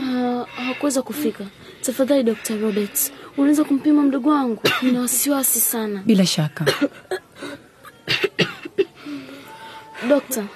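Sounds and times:
speech: 0.4s - 8.2s, 10.0s - 10.5s
harsh coughing from a young patient in a hospital drama: 4.6s - 5.1s, 6.6s - 7.4s, 8.0s - 9.0s.

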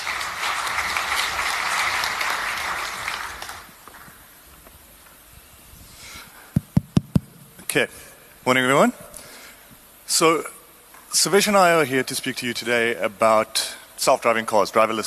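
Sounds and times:
audience applause: 0.0s - 4.2s
speech: 7.8s - 9.1s, 10.1s - 15.0s.

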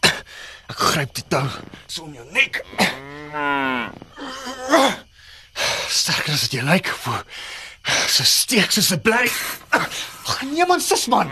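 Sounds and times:
speech: 0.8s - 5.0s, 5.9s - 11.3s
cow mooing: 2.6s - 4.0s.

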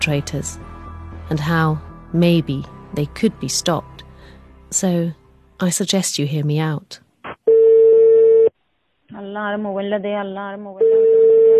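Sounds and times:
speech: 0.0s - 4.0s, 4.7s - 7.0s, 9.3s - 11.0s
unanswered phone call ringing: 7.5s - 8.5s, 10.8s - 11.5s.

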